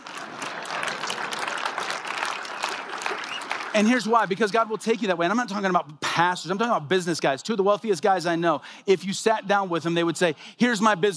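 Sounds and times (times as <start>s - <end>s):
crowd golf clapping: 0.0s - 4.4s
speech: 3.8s - 11.1s.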